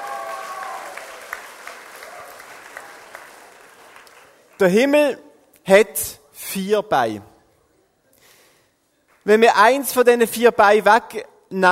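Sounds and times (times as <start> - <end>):
audience applause: 0.0 - 4.6
speech: 4.6 - 7.3, 9.2 - 11.7.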